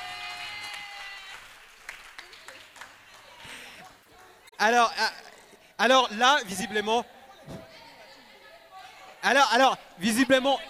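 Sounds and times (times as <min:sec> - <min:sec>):
cheering: 0:00.0 - 0:03.8
crowd applauding: 0:00.0 - 0:04.4
speech: 0:04.6 - 0:05.2, 0:05.8 - 0:07.1, 0:09.2 - 0:10.6.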